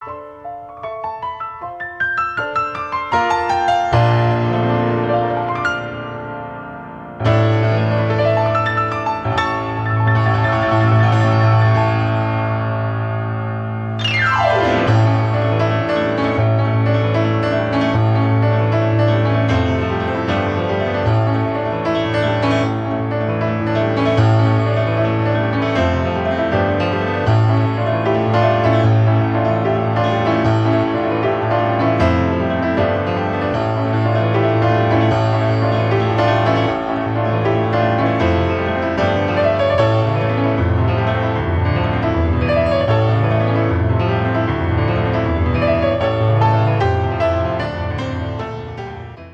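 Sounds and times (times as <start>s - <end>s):
piano fanfare: 0.0s - 49.3s.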